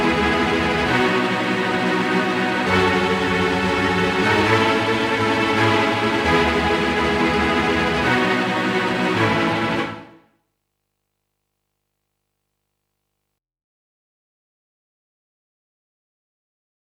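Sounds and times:
dry tremolo string arpeggio: 0.0 - 10.1.

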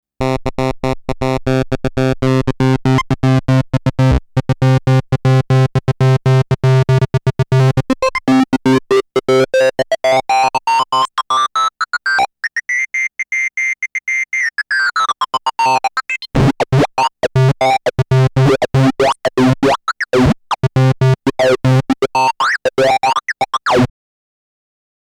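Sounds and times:
Korg EA-1 synthesizer oscillator sync modulation: 0.2 - 13.0, 14.4 - 23.9.

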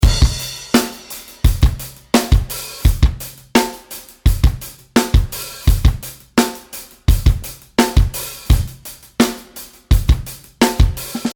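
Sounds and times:
drums: 0.0 - 11.3.

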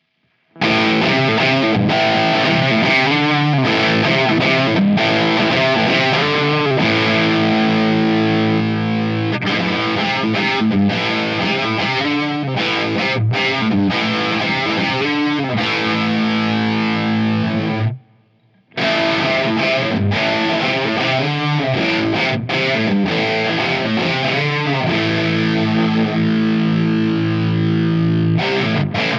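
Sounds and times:
electric guitar through a V30 cabinet: 0.0 - 29.1.

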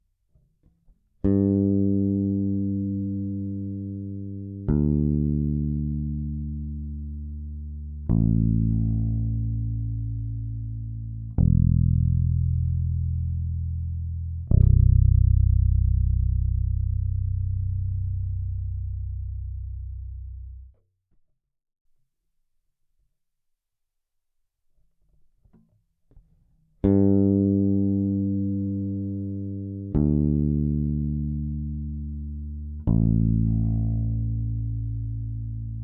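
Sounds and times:
electric bass through Phil Jones EQ mid control: 1.2 - 20.8, 26.8 - 35.8.

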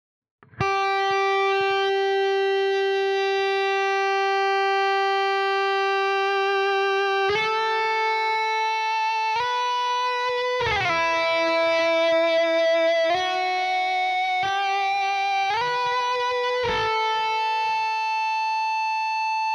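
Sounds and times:
Cort MBM 2H high gain guitar with Sustainiac: 0.4 - 19.5.

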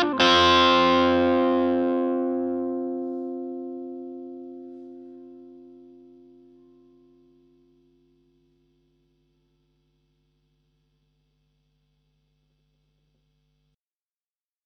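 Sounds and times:
Hagstrom Ultra Max electric guitar bridge pickup: 0.0 - 7.6.

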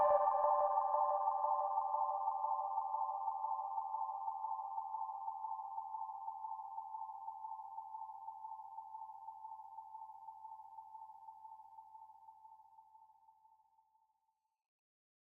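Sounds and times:
synthesizer: 0.0 - 7.4.

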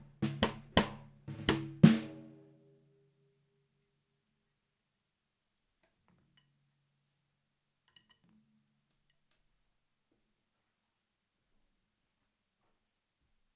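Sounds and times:
Tama LMB1465 drum tuned low: 0.0 - 2.3.

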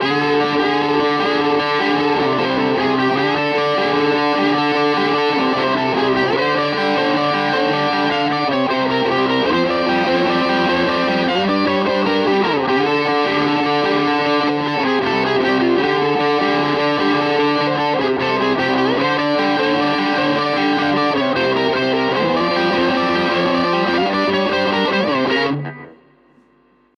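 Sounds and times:
Maybach and Harley Benton electric guitars with distortion compared: 0.0 - 26.9.

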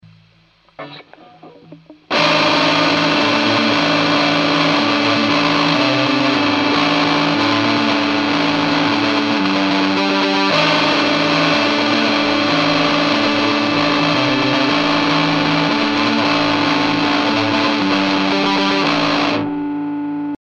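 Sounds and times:
distorted Cort electric guitar on both pickups: 0.0 - 20.4.

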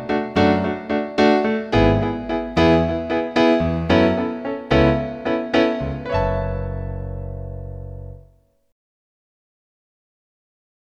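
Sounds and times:
piano: 0.0 - 8.7.

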